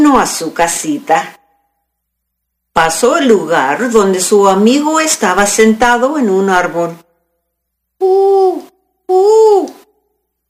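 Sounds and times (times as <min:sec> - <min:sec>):
speech: 0:00.1 - 0:01.4, 0:02.8 - 0:07.0, 0:08.0 - 0:09.8
owl hooting: 0:08.0 - 0:09.9.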